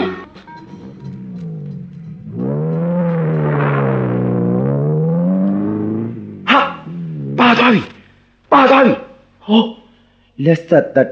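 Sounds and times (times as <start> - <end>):
approaching car engine hum: 0.0 - 10.2
short sharp burst of noise: 2.4 - 6.3
speech: 7.7 - 7.9, 9.5 - 9.7, 10.4 - 11.0.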